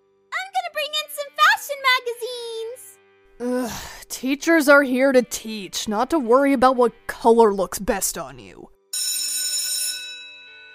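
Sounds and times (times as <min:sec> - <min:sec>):
speech: 0:03.6 - 0:08.8
school first period bell ringing: 0:09.0 - 0:10.7.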